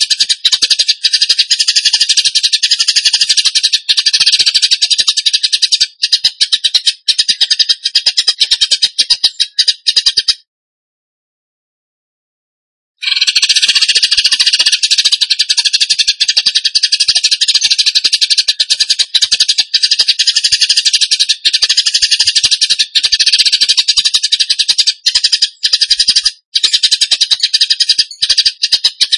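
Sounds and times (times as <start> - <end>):
bird buzzy rattling song: 0.0 - 10.5, 13.0 - 29.1.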